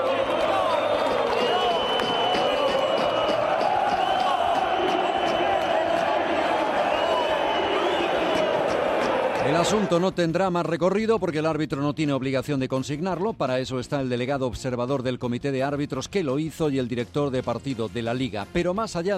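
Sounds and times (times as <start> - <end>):
football fans chanting in a stadium: 0.0 - 9.9
speech: 9.6 - 19.1.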